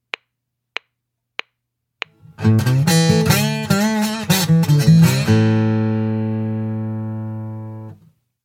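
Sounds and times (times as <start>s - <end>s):
slide guitar: 2.2s - 8.0s.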